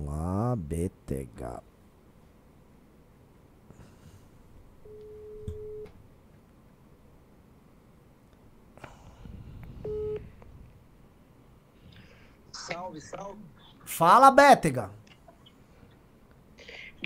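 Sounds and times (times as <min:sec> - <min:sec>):
faint noise: 0:00.0 - 0:17.0
speech: 0:00.7 - 0:01.7, 0:12.9 - 0:15.0
telephone ringback tone while placing a call: 0:09.9 - 0:10.2.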